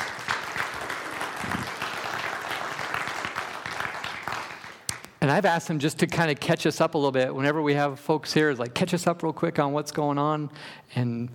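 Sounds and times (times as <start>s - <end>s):
church congregation applauding returning missionaries: 0.0s - 5.2s
speech: 5.3s - 11.3s.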